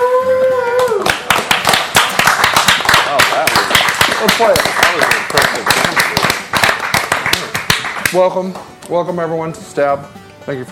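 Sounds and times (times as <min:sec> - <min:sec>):
live studio audience applauding at a comedy show: 0:00.7 - 0:08.2
speech: 0:04.4 - 0:06.1, 0:08.1 - 0:10.7.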